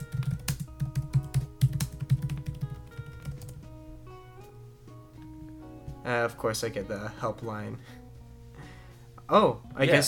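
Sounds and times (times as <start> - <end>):
computer keyboard typing a search into Chrome: 0.0 - 3.6
speech: 6.1 - 8.0, 9.3 - 10.0.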